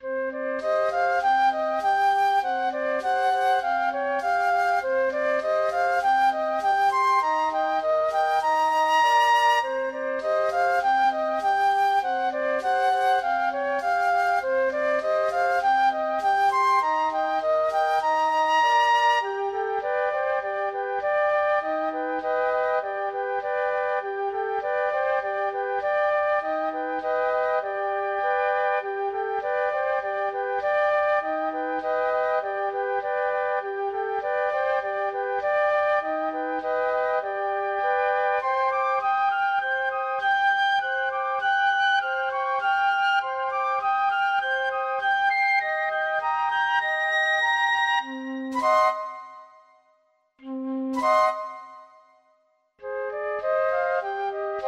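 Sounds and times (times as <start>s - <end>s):
flute trio playing: 0.0s - 49.7s, 50.4s - 52.1s, 52.8s - 54.6s.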